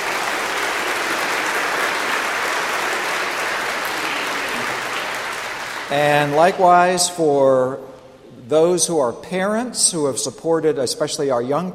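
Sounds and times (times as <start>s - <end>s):
audience applause: 0.0s - 6.7s
speech: 5.9s - 7.9s, 8.5s - 11.7s.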